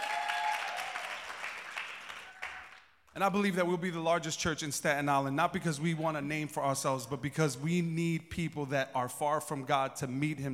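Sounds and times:
audience clapping: 0:00.0 - 0:03.1
speech: 0:03.2 - 0:10.5.

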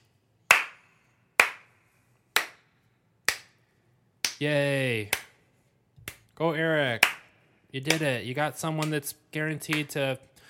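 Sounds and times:
hands clapping: 0:00.4 - 0:03.6, 0:04.2 - 0:05.4, 0:06.0 - 0:09.0, 0:09.6 - 0:10.0
speech: 0:04.4 - 0:05.2, 0:06.4 - 0:07.1, 0:07.7 - 0:10.3.

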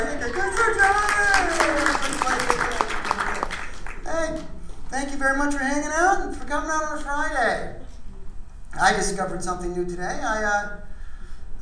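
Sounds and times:
audience clapping: 0:00.0 - 0:04.9
speech: 0:05.0 - 0:07.8, 0:08.8 - 0:10.8.

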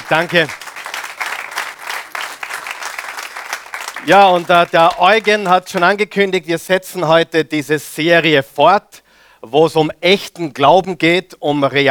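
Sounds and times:
audience applause: 0:00.0 - 0:06.0
speech: 0:00.1 - 0:00.6, 0:04.0 - 0:11.8.

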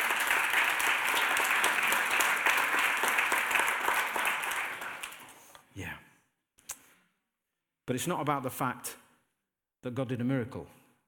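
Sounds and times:
audience clapping: 0:00.0 - 0:05.6
speech: 0:07.9 - 0:09.0, 0:09.8 - 0:10.8.

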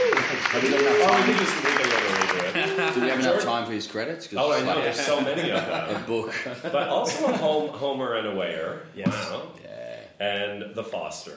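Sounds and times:
applause sound effect from button: 0:00.0 - 0:03.4
speech: 0:00.6 - 0:01.8, 0:03.0 - 0:11.3
laughter: 0:04.7 - 0:07.8.

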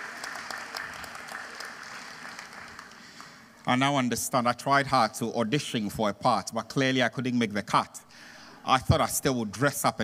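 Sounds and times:
audience applause: 0:00.0 - 0:03.5
speech: 0:03.7 - 0:10.0.

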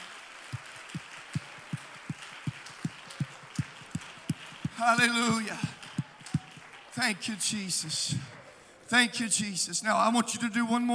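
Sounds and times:
audience hand clapping: 0:00.0 - 0:08.6
speech: 0:04.8 - 0:05.8, 0:07.0 - 0:10.9.

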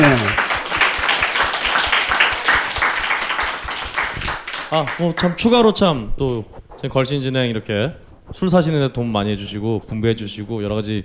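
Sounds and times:
applause: 0:00.0 - 0:05.4
speech: 0:04.7 - 0:11.0.

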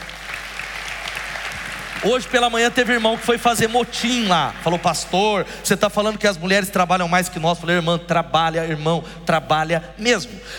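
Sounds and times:
audience applause: 0:00.0 - 0:05.4
speech: 0:02.0 - 0:10.5.

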